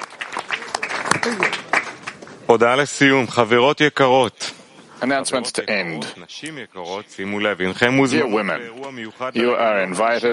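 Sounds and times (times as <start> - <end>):
audience applause: 0.0 - 2.4
speech: 1.2 - 1.6, 2.5 - 10.3.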